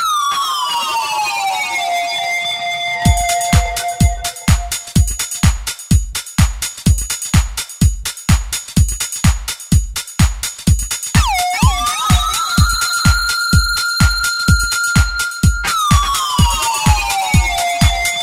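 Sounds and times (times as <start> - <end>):
electrofunk music: 0.1 - 18.2.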